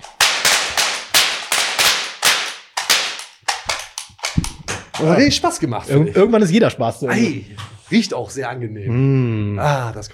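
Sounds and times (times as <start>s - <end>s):
confetti cannons firing sharp hissing pops: 0.0s - 5.2s
speech: 5.0s - 10.1s.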